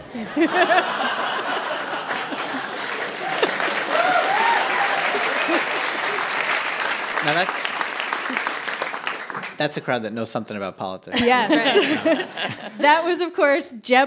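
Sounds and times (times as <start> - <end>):
laughter: 0.0 - 6.6, 11.1 - 13.2
speech: 0.1 - 1.2, 7.3 - 7.6, 9.6 - 14.0
live audience applause: 0.4 - 9.9.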